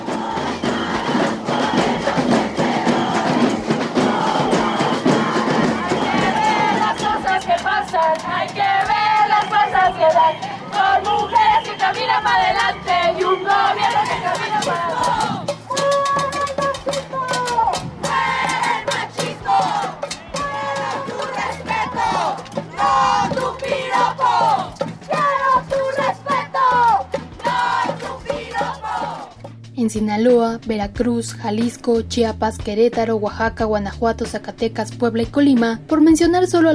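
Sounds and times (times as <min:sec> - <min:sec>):
crowd of women chanting at protest march: 0:00.0 - 0:29.4
speech: 0:29.9 - 0:36.7.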